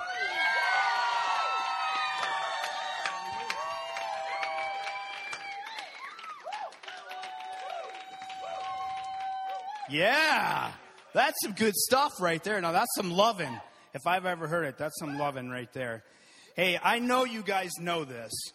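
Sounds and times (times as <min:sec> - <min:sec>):
loud whoops and high shouts: 0:00.0 - 0:10.8
crowd cheering a guest speaker: 0:00.0 - 0:11.7
rolling applause: 0:00.4 - 0:11.2
speech: 0:09.9 - 0:18.5.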